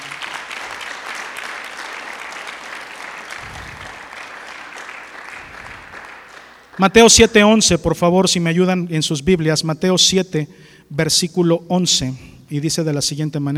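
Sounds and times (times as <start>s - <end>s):
audience applauding: 0.0s - 7.2s
speech: 6.8s - 13.5s.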